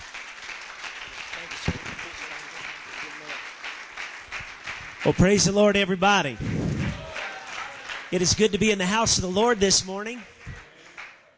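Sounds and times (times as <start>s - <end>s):
audience hand clapping: 0.0s - 11.3s
speech: 5.0s - 6.6s, 8.1s - 10.4s.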